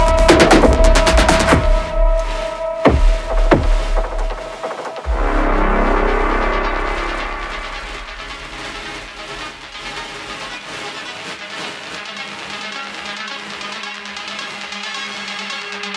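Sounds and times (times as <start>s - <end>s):
combat music loop: 0.0s - 10.6s.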